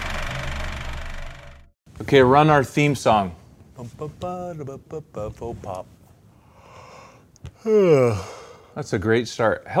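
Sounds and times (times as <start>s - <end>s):
speech: 2.0s - 6.0s, 7.6s - 9.7s
person yawning: 6.8s - 8.7s.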